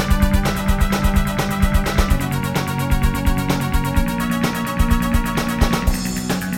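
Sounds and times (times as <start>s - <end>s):
EMU sound engine synthesizer sound: 0.0s - 6.4s.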